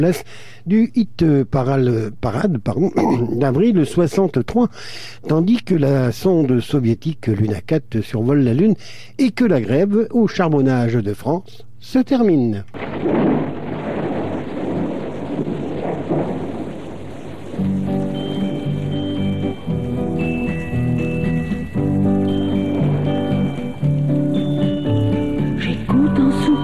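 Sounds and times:
speech: 0.0 - 13.2
rain pattering on window panes: 12.6 - 25.6.

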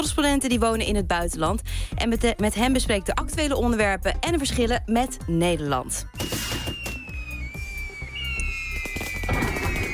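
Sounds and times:
speech: 0.0 - 6.5
fireworks being set off: 8.1 - 9.9.

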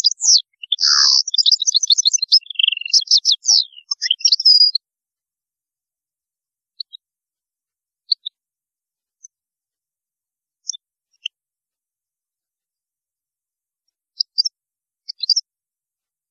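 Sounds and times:
European goldfinch twittering song: 0.0 - 4.8, 8.1 - 8.3, 14.2 - 14.5, 15.1 - 15.4.

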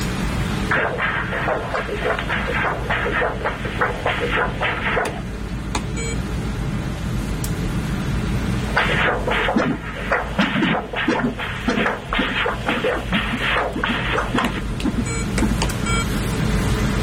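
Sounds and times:
steady low hum: 0.0 - 6.2, 7.4 - 17.0
Doppler ultrasound of blood flowing across a heart valve: 0.4 - 6.1, 8.6 - 16.0.

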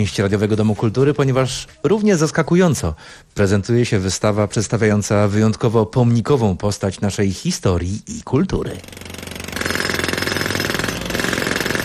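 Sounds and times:
speech: 0.0 - 9.2
pneumatic jackhammer: 8.8 - 11.8.

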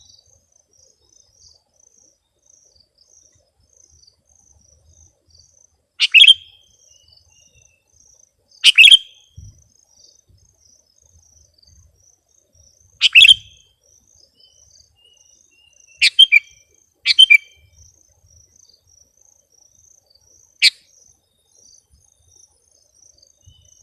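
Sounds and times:
sooty-headed bulbul chirpy phrases: 6.0 - 7.9, 8.6 - 9.6, 12.9 - 13.7, 14.3 - 17.6.

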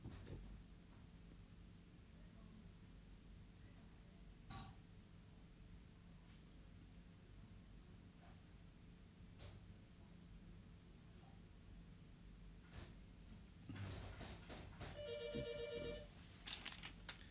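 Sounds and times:
steady hiss and low hum: 0.0 - 17.3
telephone ringing in a short electronic trill: 15.0 - 16.1
rustling: 16.2 - 17.3.

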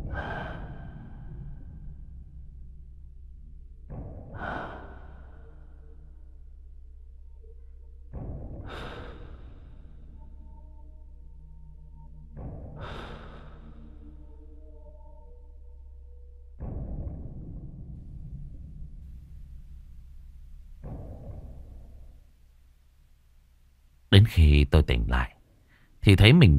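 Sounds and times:
heavy wheezing breathing: 0.1 - 1.4, 12.8 - 14.0
speech: 24.1 - 25.4, 26.0 - 26.5.

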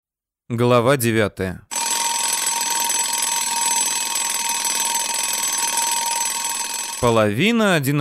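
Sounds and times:
speech: 0.5 - 1.7, 7.0 - 8.0
alarm clock ringing: 1.7 - 7.2.

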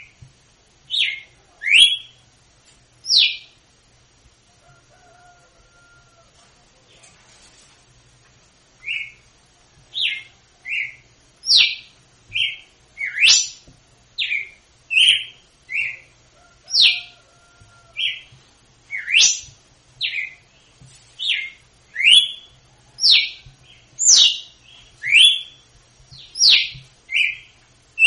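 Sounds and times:
female red-cowled cardinal singing in Northeast Brazil style: 0.9 - 2.2, 10.0 - 13.6, 14.2 - 16.1, 18.9 - 20.4, 21.2 - 23.3, 24.0 - 25.6, 26.2 - 28.0.

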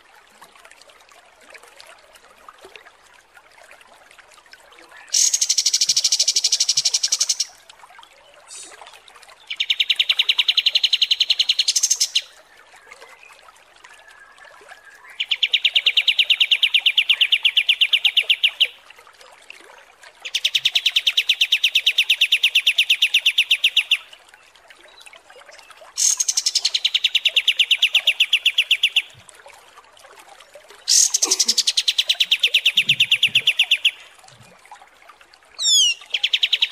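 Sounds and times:
striated grassbird song: 5.1 - 7.5, 9.5 - 12.3, 15.2 - 18.8, 20.2 - 24.1, 26.0 - 29.2, 30.9 - 34.1, 35.6 - 36.7.

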